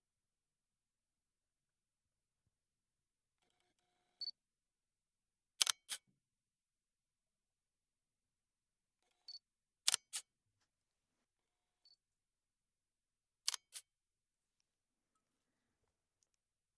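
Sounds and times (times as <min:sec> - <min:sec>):
Lumix GF2 camera switching on and off and shutter: 0:05.6 - 0:06.0, 0:13.5 - 0:13.9.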